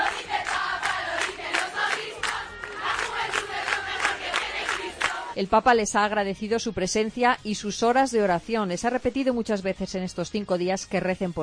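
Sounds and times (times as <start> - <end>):
large crowd of young pilgrims shouting and chanting: 0.0 - 5.4
speech: 5.4 - 11.4.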